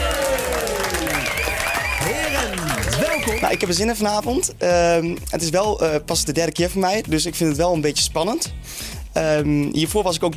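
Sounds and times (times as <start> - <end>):
audience applause for guests on a television talk show: 0.0 - 3.7
speech: 3.2 - 10.3.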